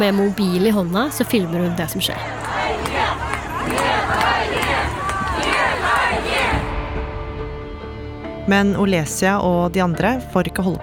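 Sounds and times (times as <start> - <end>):
speech: 0.0 - 2.6, 8.5 - 10.8
babble: 0.0 - 6.7
protest crowd chanting slogans in the street: 0.0 - 7.0.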